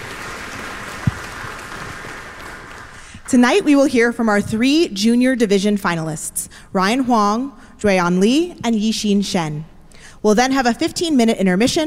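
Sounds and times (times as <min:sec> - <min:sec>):
audience applause: 0:00.0 - 0:03.2
speech: 0:03.3 - 0:11.8.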